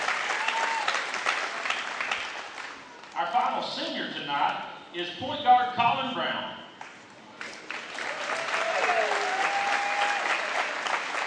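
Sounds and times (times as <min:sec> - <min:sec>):
audience applause: 0:00.0 - 0:03.1, 0:07.4 - 0:11.2
speech: 0:03.6 - 0:06.5.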